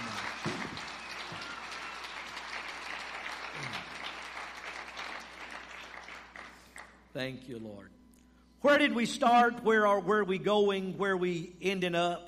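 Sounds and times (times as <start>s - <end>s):
crowd clapping: 0.0s - 7.1s
speech: 7.2s - 8.0s, 8.6s - 12.2s.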